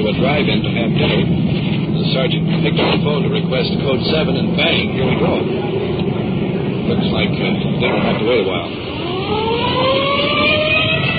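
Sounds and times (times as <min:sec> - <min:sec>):
police car engine rumble: 0:00.0 - 0:11.1
speech: 0:00.1 - 0:05.8, 0:06.9 - 0:10.0
police car siren wailing rolling code 3: 0:07.1 - 0:11.1.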